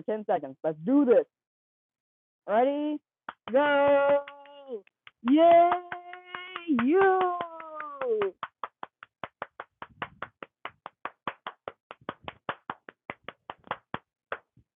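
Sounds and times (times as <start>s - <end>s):
speech: 0.0s - 1.4s, 2.4s - 5.9s, 6.7s - 7.4s, 8.0s - 8.5s
hand clapping: 3.3s - 14.6s.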